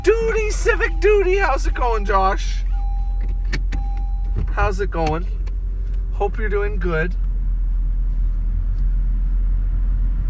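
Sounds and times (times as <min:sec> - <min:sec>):
car engine and road drone: 0:00.0 - 0:10.2
speech: 0:00.5 - 0:02.7, 0:04.6 - 0:05.4, 0:06.2 - 0:07.2.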